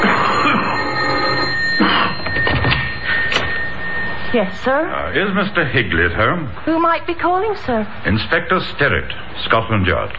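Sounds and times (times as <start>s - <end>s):
doorbell ringing: 0.0s - 6.0s
speech: 4.3s - 10.1s.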